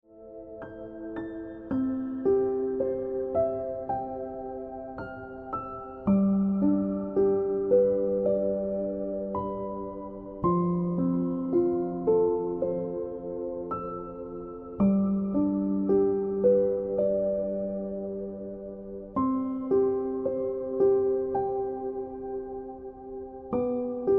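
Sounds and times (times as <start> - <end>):
piano ringtone music: 0.1 - 24.1.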